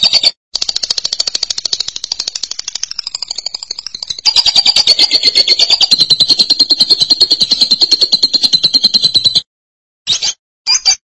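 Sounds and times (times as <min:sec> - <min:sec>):
lovebird chattering: 0:00.0 - 0:09.4.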